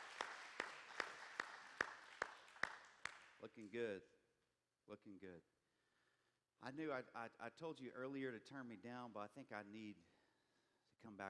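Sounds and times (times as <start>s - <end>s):
audience applauding: 0.0s - 3.7s
speech: 3.4s - 4.2s, 4.9s - 5.5s, 6.6s - 10.1s, 11.0s - 11.2s.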